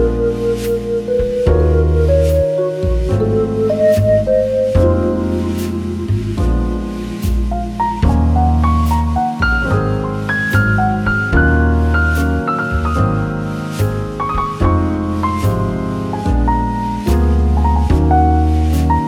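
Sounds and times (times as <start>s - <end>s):
bar piano: 0.0s - 19.0s.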